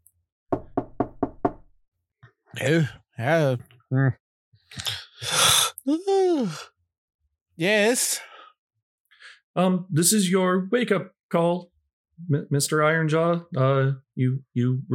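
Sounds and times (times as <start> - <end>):
knocking on a door: 0.5 - 1.7
speech: 2.6 - 4.9, 5.8 - 6.7, 7.6 - 8.3, 9.6 - 14.9
person sighing and groaning: 3.9 - 6.8.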